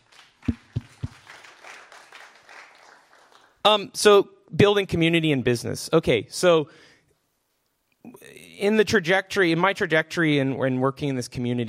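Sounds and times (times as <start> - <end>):
audience applause: 0.0 - 3.6
speech: 3.6 - 6.9, 8.6 - 11.6.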